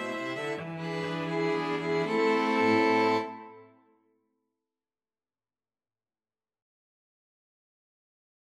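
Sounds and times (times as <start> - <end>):
string quartet playing: 0.0 - 3.7.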